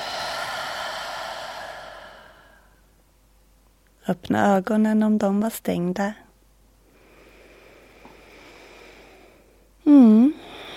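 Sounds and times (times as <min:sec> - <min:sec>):
deep exhale: 0:00.0 - 0:02.9, 0:06.9 - 0:10.7
speech: 0:04.0 - 0:06.2.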